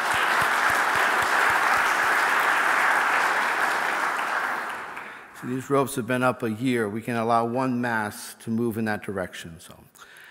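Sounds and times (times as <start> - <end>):
audience applause: 0.0 - 5.4
speech: 5.4 - 10.2.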